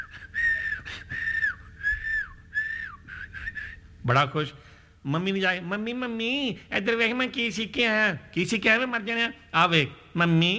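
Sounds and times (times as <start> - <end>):
person newly taught to whistle whistling: 0.0 - 3.8
speech: 4.0 - 10.5.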